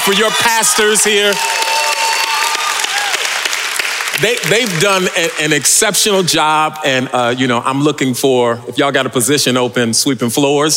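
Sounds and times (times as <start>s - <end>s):
speech: 0.0s - 2.0s, 4.2s - 10.7s
church audience cheering and whoops: 0.0s - 3.9s
church audience applauding: 0.0s - 6.2s.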